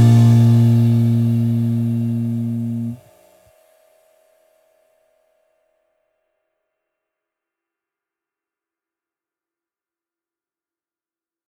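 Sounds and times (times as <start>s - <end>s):
blues in B flat: 0.0s - 3.0s.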